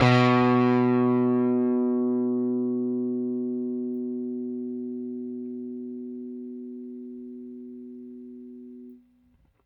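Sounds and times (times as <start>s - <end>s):
Rickenbacker bass guitar: 0.0s - 8.0s.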